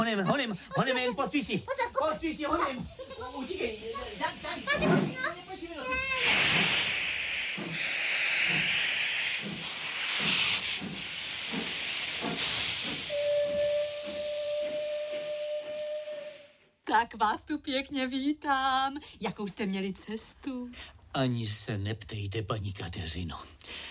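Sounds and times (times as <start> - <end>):
speech: 0.1 - 6.9, 7.6 - 8.8, 16.9 - 23.9
steam locomotive hissing: 0.3 - 16.7.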